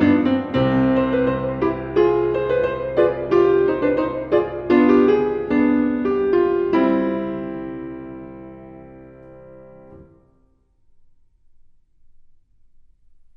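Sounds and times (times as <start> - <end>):
prelude and fugue: 0.0 - 10.3.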